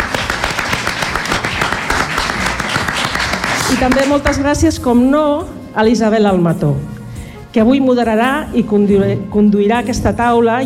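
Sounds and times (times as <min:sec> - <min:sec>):
audience applause: 0:00.0 - 0:04.3
speech: 0:03.7 - 0:06.9, 0:07.6 - 0:10.6.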